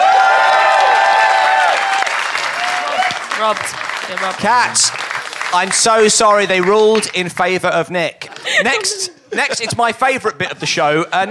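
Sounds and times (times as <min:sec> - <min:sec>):
audience applause: 0:00.0 - 0:07.2
speech: 0:03.4 - 0:11.2
laughter: 0:08.2 - 0:11.2.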